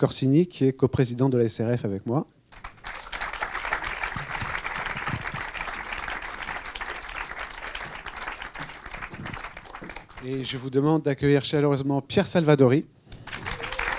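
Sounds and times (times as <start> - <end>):
speech: 0.0 - 2.4, 10.3 - 13.0
audience applause at a cinema event honoring comedy: 2.6 - 10.6, 13.2 - 13.9.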